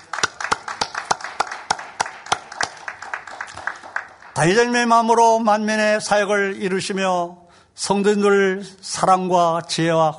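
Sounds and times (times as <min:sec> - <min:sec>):
audience clapping: 0:00.0 - 0:04.8
speech: 0:04.4 - 0:10.1.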